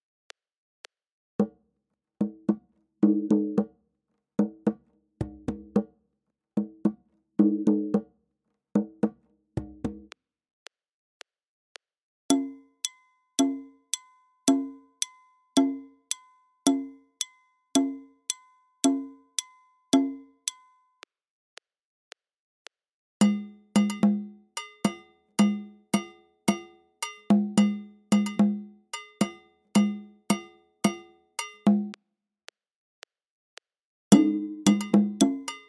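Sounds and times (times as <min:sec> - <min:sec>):
music: 0:01.4 - 0:01.6, 0:02.2 - 0:03.8, 0:04.4 - 0:06.0, 0:06.6 - 0:08.2, 0:08.8 - 0:10.2, 0:12.3 - 0:21.1, 0:23.2 - 0:32.0, 0:34.1 - 0:35.6.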